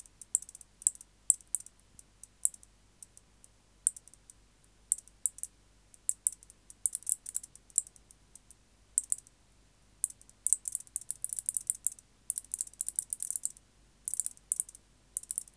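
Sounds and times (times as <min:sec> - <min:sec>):
white-faced bush-cricket stridulating: 0:00.0 - 0:09.3, 0:10.0 - 0:15.5.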